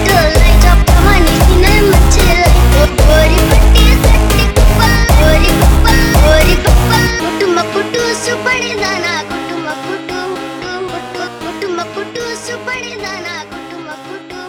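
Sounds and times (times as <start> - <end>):
slowed funk music: 0.0 - 8.1.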